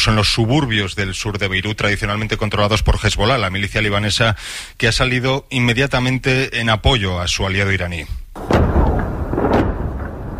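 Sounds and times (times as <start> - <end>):
speech: 0.0 - 8.6
bombs exploding in the southern suburbs of Beirut: 8.4 - 10.3.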